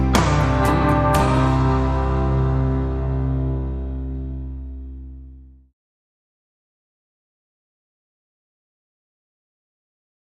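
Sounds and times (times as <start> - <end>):
contemporary country ballad: 0.0 - 5.2.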